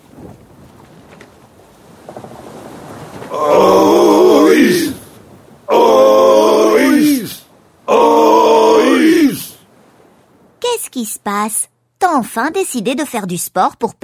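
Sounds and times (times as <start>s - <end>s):
rushing noise: 3.2s - 9.7s
sailors grunting while hauling boats with ropes: 3.3s - 5.1s, 5.7s - 9.6s
speech: 11.2s - 14.0s.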